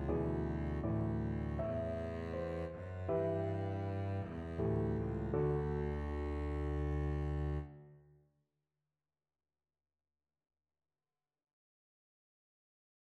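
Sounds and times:
nocturne on double bass: 0.0s - 7.7s.

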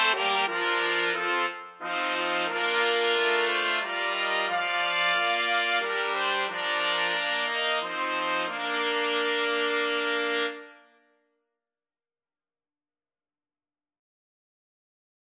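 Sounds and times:
trumpet quartet playing: 0.0s - 10.8s.

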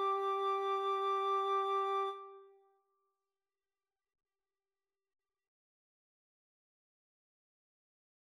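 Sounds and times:
flute trio playing: 0.0s - 2.5s.

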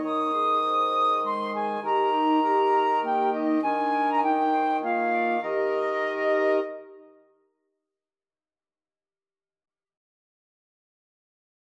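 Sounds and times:
wind quintet playing a lullaby: 0.0s - 7.2s.

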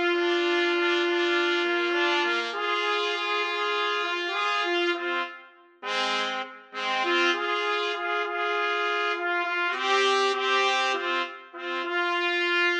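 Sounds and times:
trumpet trio playing: 0.0s - 12.7s.

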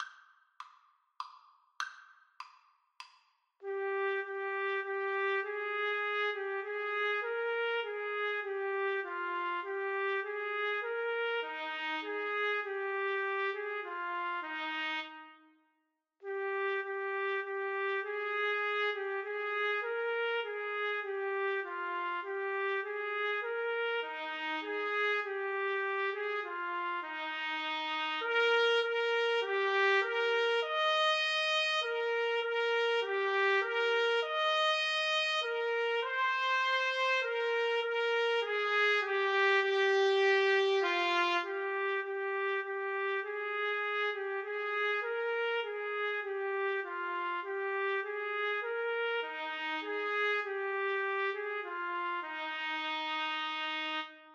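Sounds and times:
trumpet duet: 3.6s - 15.5s, 16.2s - 54.3s.

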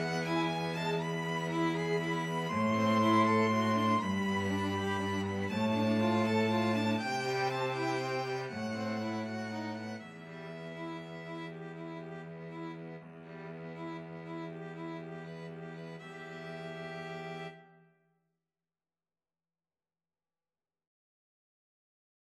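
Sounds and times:
cello: 0.0s - 17.8s
two violins: 0.0s - 17.8s.

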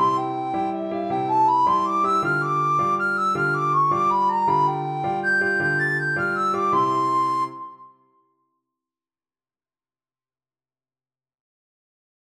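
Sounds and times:
recorder playing a dance: 0.0s - 7.6s.

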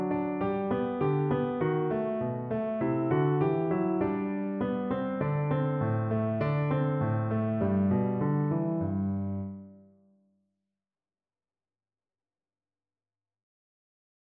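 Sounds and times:
march tune played on piano: 0.0s - 10.0s.

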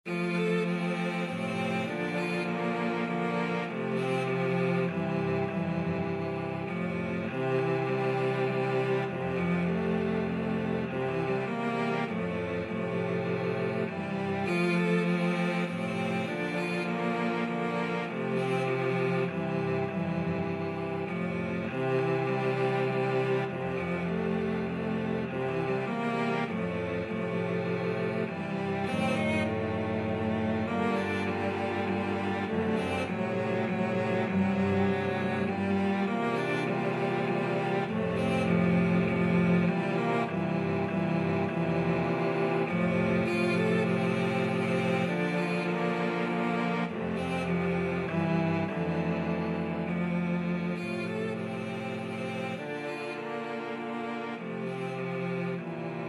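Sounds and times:
cello quartet: 0.0s - 56.0s.

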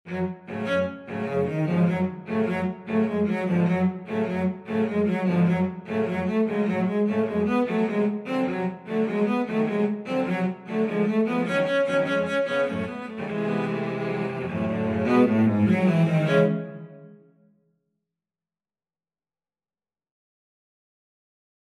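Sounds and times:
cello quartet: 0.1s - 17.1s.

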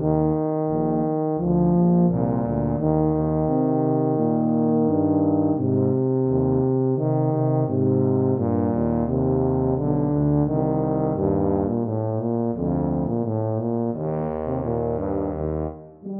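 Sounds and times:
tuba duet: 0.0s - 16.1s.

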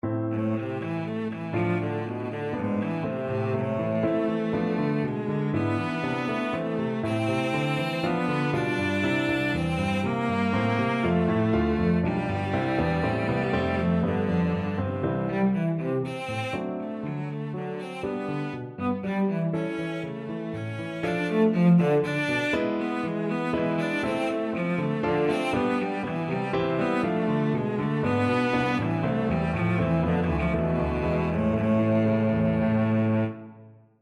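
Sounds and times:
cello: 0.0s - 34.0s.

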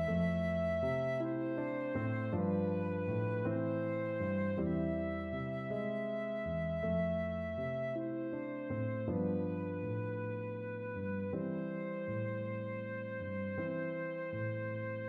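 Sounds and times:
flute lullaby: 0.0s - 15.0s.

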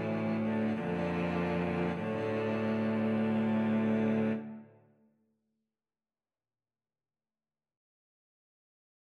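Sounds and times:
cello quartet playing a funeral march: 0.0s - 4.6s.

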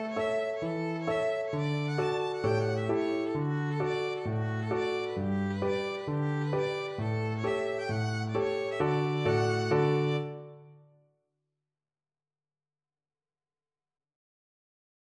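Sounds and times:
violin playing a hornpipe: 0.0s - 10.5s.

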